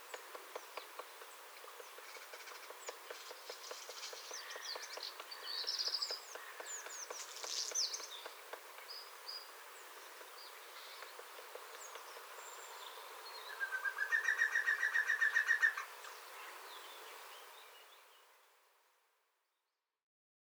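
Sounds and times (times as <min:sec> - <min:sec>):
green woodpecker calling: 0:00.0 - 0:16.0.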